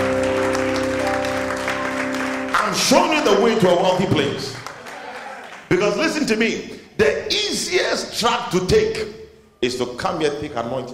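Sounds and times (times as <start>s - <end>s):
audience clapping: 0.0s - 5.9s
speech: 2.7s - 4.7s, 5.7s - 10.9s.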